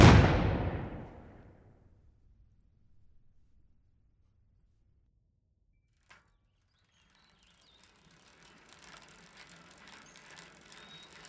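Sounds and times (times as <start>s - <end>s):
grenade explosion: 0.0s - 1.4s.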